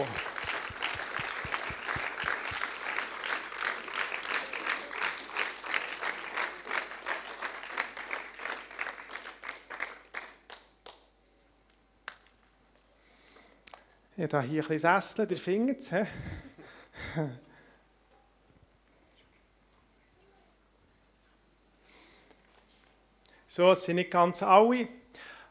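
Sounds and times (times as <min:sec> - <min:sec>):
audience applause: 0:00.0 - 0:11.0
speech: 0:14.2 - 0:16.5, 0:17.2 - 0:17.5, 0:23.6 - 0:25.0.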